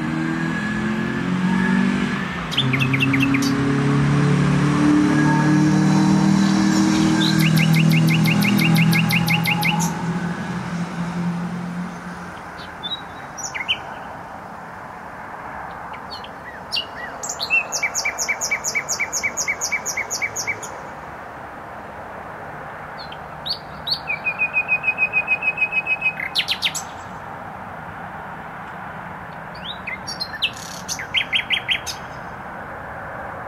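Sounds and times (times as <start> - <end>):
road traffic roaring: 0.0 - 33.4
nightingale song: 1.7 - 3.8, 5.0 - 10.2, 11.8 - 14.2, 15.9 - 21.0, 23.0 - 27.2, 29.4 - 32.4.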